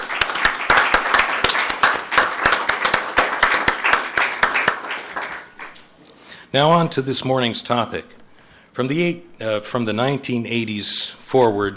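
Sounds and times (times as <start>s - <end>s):
audience applause welcoming a speaker to a morning program on immigration: 0.0s - 5.8s
speech: 6.5s - 8.2s, 8.8s - 11.7s.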